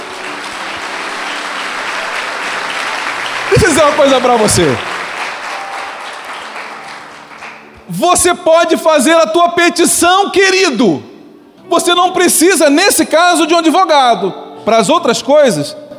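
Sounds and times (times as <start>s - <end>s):
audience applause: 0.0s - 7.8s
speech: 3.7s - 4.9s, 8.0s - 11.1s, 11.7s - 15.8s.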